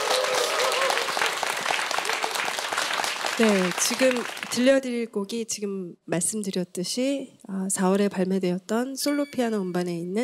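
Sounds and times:
audience applause: 0.0 - 4.6
speech: 3.4 - 10.2.

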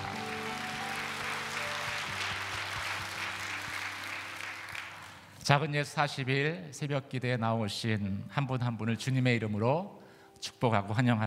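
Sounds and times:
audience applause: 0.0 - 5.4
speech: 5.5 - 11.2.

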